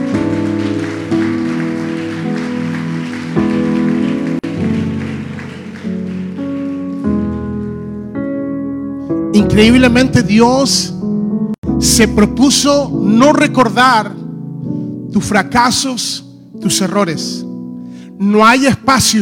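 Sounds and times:
crowd clapping loudly: 0.0 - 8.1
sustained keyboard chords: 0.0 - 15.2
speech: 9.6 - 11.0, 12.0 - 14.2, 15.1 - 17.4, 18.2 - 19.2.

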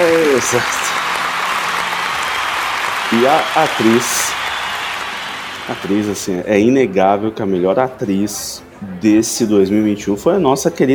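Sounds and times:
applause: 0.0 - 6.4
speech: 0.4 - 1.0, 3.1 - 4.4, 5.7 - 10.9.

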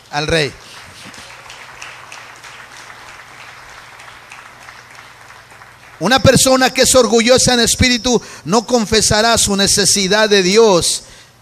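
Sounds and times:
speech: 0.1 - 1.2, 6.0 - 11.1
audience applause: 0.6 - 7.0.

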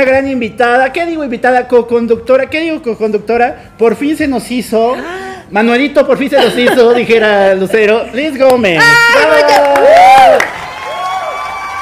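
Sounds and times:
speech: 0.0 - 10.0
laughter: 6.3 - 8.3
crowd cheering and applauding: 8.8 - 11.8
whoops: 8.8 - 11.8.

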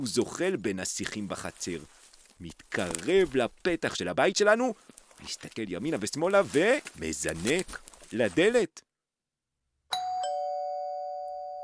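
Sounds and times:
speech: 0.0 - 8.9
doorbell ringing: 9.9 - 11.6.

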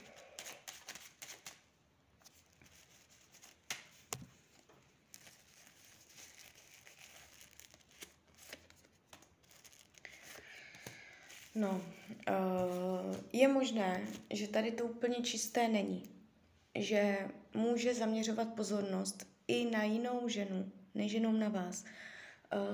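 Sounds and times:
tarot cards being shuffled and laid down: 0.0 - 14.4
speech: 11.6 - 16.2, 16.8 - 22.7.

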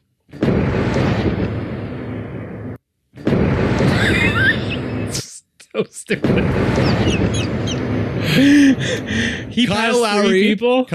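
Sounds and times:
cannon blast sound effects: 0.3 - 5.2, 6.2 - 9.6
laughter: 3.9 - 10.5
speech: 5.8 - 10.9.

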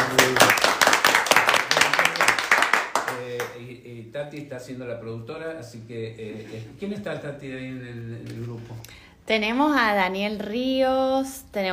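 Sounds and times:
small group applauding: 0.0 - 3.7
speech: 4.2 - 11.7.

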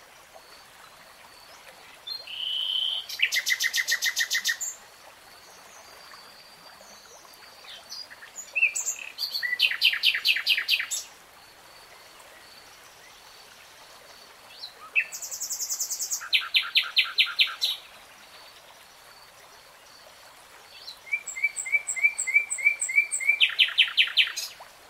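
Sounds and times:
nightingale singing: 2.1 - 4.8, 8.5 - 11.0, 14.7 - 17.8, 20.8 - 24.5.

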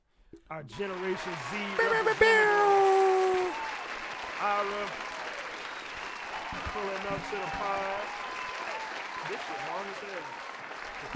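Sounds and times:
speech: 0.5 - 2.9, 4.4 - 5.1, 6.5 - 8.2, 9.2 - 10.4, 11.0 - 11.1
round of applause: 0.7 - 11.1.

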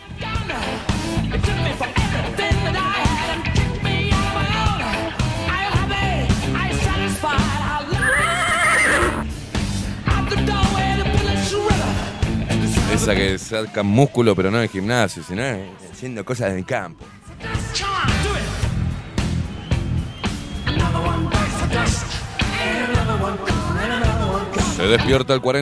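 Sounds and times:
music: 0.0 - 25.5
horse neighing: 8.0 - 9.2
speech: 13.1 - 17.2, 24.8 - 25.5.

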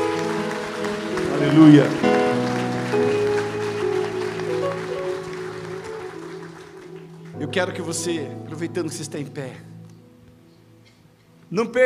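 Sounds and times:
audience applause: 0.0 - 8.1
speech: 1.4 - 2.0, 7.6 - 9.7, 11.5 - 11.8.

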